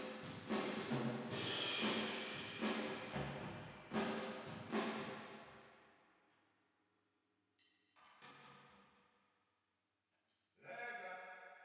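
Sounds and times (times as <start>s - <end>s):
drums with reverb: 0.0s - 5.4s.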